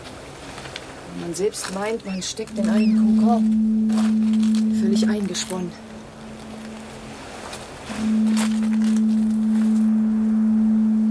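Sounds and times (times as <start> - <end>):
speech: 1.2 - 5.9
ship's foghorn: 2.5 - 11.0.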